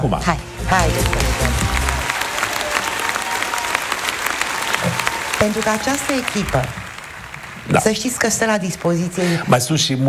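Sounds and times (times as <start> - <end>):
speech: 0.0 - 1.7, 5.4 - 6.8, 7.7 - 10.0
audience applause: 0.5 - 9.8.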